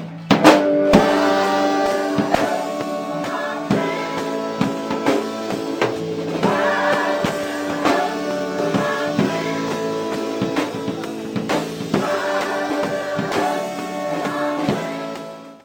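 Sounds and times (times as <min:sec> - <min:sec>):
mass choir singing in rehearsal in Chicago: 0:00.5 - 0:15.6.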